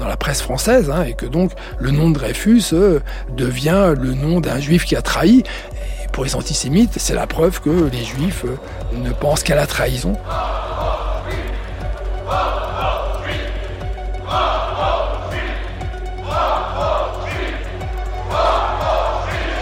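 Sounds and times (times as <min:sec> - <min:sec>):
speech: 0:00.1 - 0:10.7
angry mob shouting: 0:10.2 - 0:19.6
steady crowd roar: 0:10.3 - 0:19.6.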